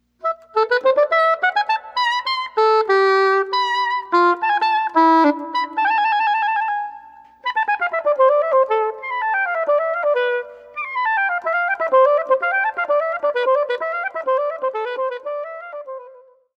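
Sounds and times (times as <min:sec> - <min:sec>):
flute: 0:00.2 - 0:16.5.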